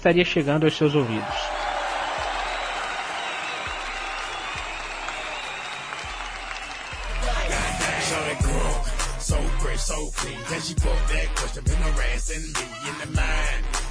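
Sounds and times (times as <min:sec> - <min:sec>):
speech: 0:00.0 - 0:01.6, 0:09.8 - 0:13.8
cheers: 0:00.7 - 0:09.2
crowd applauding: 0:00.8 - 0:09.2.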